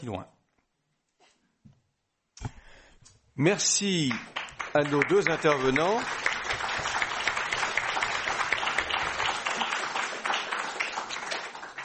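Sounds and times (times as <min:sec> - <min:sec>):
speech: 0:00.0 - 0:00.4, 0:03.4 - 0:07.0
audience applause: 0:04.0 - 0:11.8.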